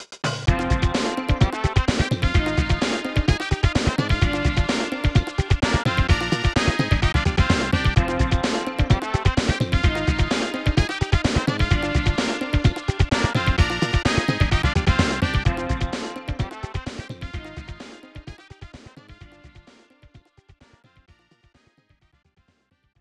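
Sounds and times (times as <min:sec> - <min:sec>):
victory music: 0:00.5 - 0:18.4.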